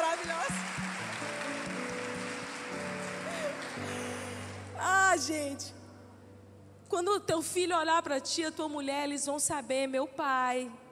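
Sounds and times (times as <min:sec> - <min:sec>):
church audience applauding: 0:00.0 - 0:04.7
keyboard chords: 0:00.0 - 0:06.9
speech: 0:05.2 - 0:05.8, 0:06.9 - 0:10.8.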